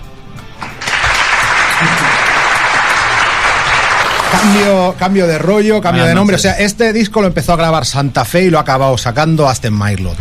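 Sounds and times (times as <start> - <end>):
audience applause: 0.6 - 4.7
speech: 4.3 - 10.2.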